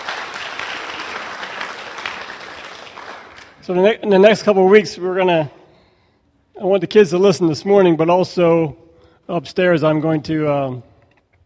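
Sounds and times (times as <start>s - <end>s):
audience applause: 0.0s - 3.7s
speech: 3.7s - 5.6s, 6.6s - 10.9s.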